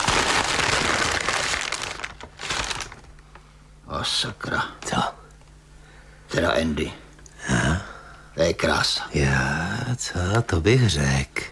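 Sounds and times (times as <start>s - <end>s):
tissue paper rustling and crinkling while unwrapped: 0.0s - 3.2s
speech: 4.0s - 5.2s, 6.4s - 7.0s, 8.4s - 11.5s.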